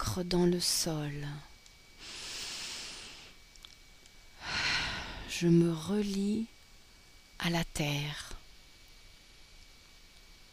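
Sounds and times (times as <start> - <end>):
speech: 0.2 - 1.5, 5.4 - 6.6, 7.4 - 8.3
slow airy breathing during a guided meditation: 2.0 - 3.4, 4.4 - 5.3.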